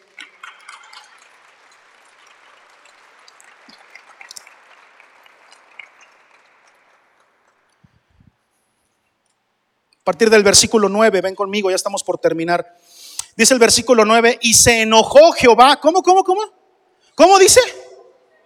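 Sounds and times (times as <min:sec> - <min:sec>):
audience applauding: 0:00.0 - 0:07.9
speech: 0:10.1 - 0:16.6, 0:17.2 - 0:17.8.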